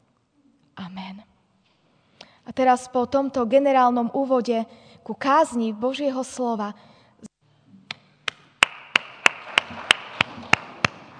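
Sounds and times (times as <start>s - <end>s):
speech: 0.8s - 1.4s, 2.5s - 6.9s
church congregation clapping in unison: 8.3s - 11.1s.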